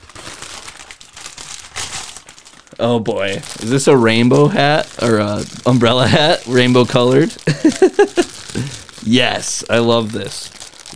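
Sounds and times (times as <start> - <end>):
large delivery package being torn open: 0.0 - 10.9
speech: 2.8 - 10.9
laughter: 7.4 - 8.3.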